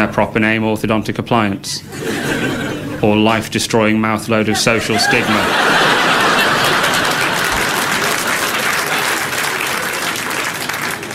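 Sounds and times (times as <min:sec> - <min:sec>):
speech: 0:00.0 - 0:06.0
laughter: 0:01.9 - 0:03.1, 0:04.4 - 0:11.1
audience applause: 0:04.9 - 0:11.1.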